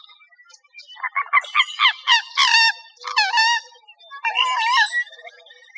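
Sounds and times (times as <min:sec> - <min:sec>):
bird harsh squawks: 0:01.1 - 0:05.2.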